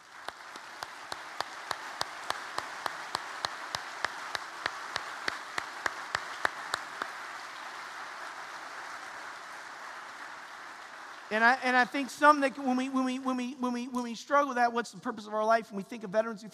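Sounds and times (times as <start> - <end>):
audience applause: 0.0 - 12.2
speech: 11.3 - 16.5.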